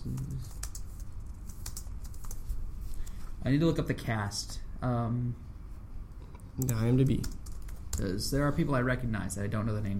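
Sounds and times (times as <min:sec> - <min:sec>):
rapid typing on a computer keyboard during a web search: 0:00.0 - 0:02.6, 0:06.6 - 0:08.3
speech: 0:03.4 - 0:05.5, 0:06.6 - 0:07.4, 0:08.0 - 0:09.9.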